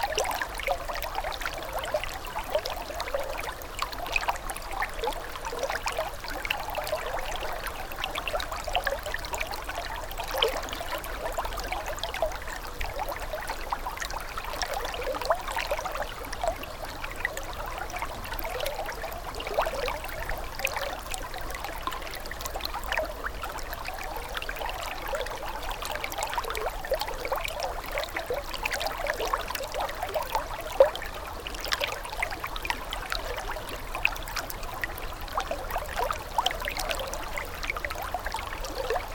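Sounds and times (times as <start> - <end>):
brook: 0.0 - 39.1.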